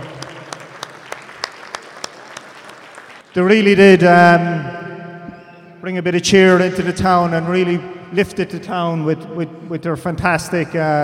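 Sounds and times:
round of applause: 0:00.0 - 0:03.3
speech: 0:03.4 - 0:04.8, 0:05.8 - 0:11.0.

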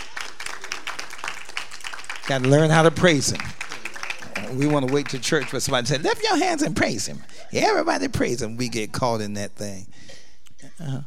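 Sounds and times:
audience clapping: 0:00.0 - 0:07.4
speech: 0:02.3 - 0:03.6, 0:04.5 - 0:11.0.

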